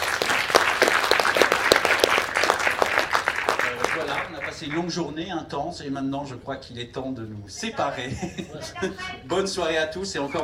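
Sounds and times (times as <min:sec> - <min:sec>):
audience applause: 0:00.0 - 0:05.0
speech: 0:04.6 - 0:10.4
laughter: 0:07.9 - 0:09.2.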